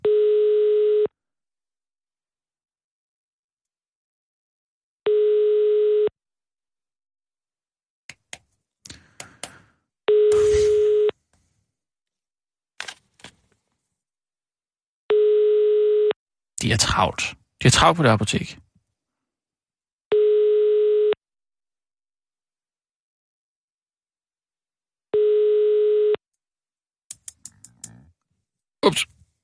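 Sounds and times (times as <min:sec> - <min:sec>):
telephone line busy waiting tone: 0:00.0 - 0:01.1, 0:05.1 - 0:06.1, 0:10.1 - 0:11.1, 0:15.1 - 0:16.2, 0:20.1 - 0:21.2, 0:25.2 - 0:26.2
speech: 0:16.6 - 0:18.6, 0:28.8 - 0:29.2.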